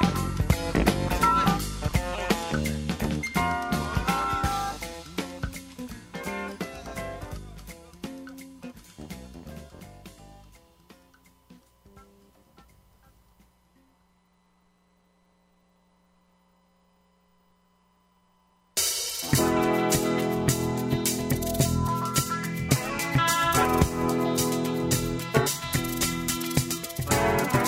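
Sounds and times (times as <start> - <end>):
jazz music: 0.0 - 13.3, 18.8 - 27.6.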